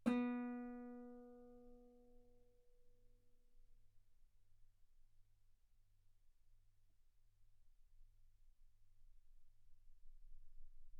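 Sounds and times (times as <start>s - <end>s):
guitar B3 note on B string played fortissimo: 0.0s - 1.7s.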